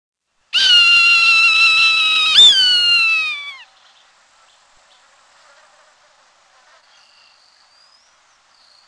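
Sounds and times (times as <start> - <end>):
Swainson's Hawk screaming: 0.6 - 3.6.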